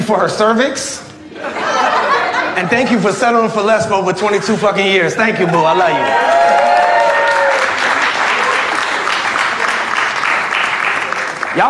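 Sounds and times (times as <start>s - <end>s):
speech: 0.1s - 1.8s, 2.6s - 6.7s
laughter: 1.2s - 3.4s
audience applause: 5.8s - 11.6s.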